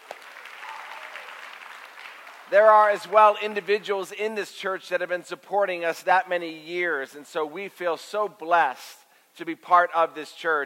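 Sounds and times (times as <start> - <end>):
audience applause: 0.0 - 3.7
speech: 2.5 - 10.6.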